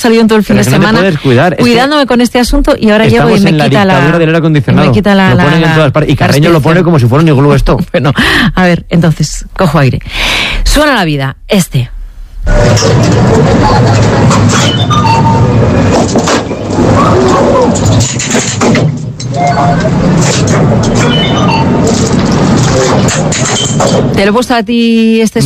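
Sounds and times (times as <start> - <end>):
speech: 0.0 - 25.4
fairground amusement ride: 12.5 - 24.2.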